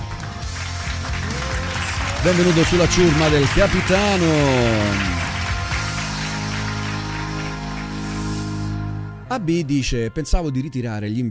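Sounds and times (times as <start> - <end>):
applause sound effect: 0.0 - 8.6
speech: 2.2 - 5.2, 9.3 - 11.3.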